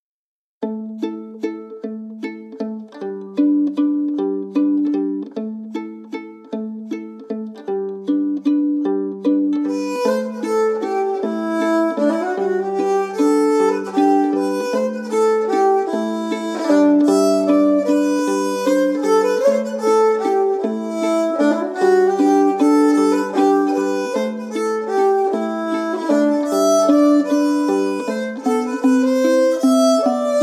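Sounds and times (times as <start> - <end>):
waltz: 0.7 - 30.4.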